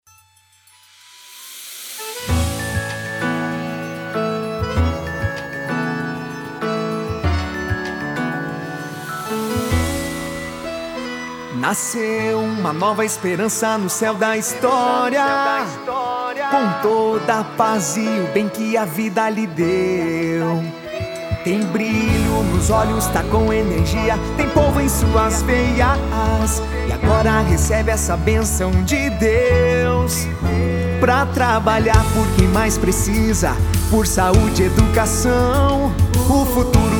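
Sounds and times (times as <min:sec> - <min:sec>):
jingle: 0:00.0 - 0:36.9.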